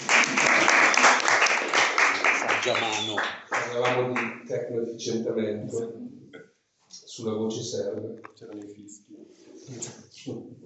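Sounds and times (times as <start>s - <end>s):
audience applause: 0.0s - 4.4s
speech: 2.6s - 6.2s, 6.9s - 10.6s.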